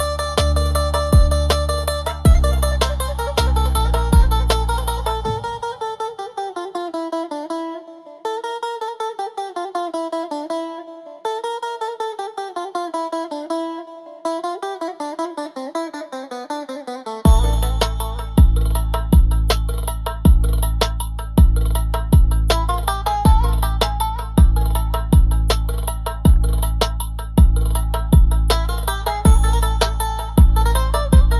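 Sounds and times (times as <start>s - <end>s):
Middle Eastern drum beat: 0.0s - 6.0s, 17.3s - 31.3s.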